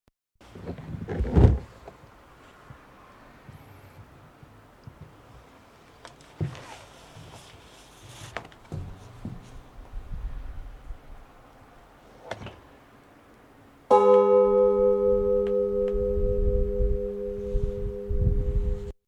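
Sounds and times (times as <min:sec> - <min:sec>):
bell ringing: 0:13.9 - 0:18.7.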